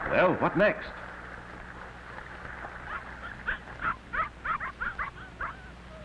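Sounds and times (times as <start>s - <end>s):
speech: 0.2s - 1.0s
red setter dog barking: 2.8s - 6.0s.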